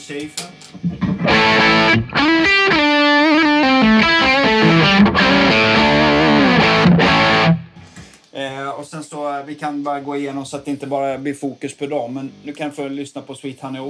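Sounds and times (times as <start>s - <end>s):
speech: 0.1s - 2.5s, 9.4s - 13.8s
electric guitar through an overdrive pedal: 0.4s - 8.0s.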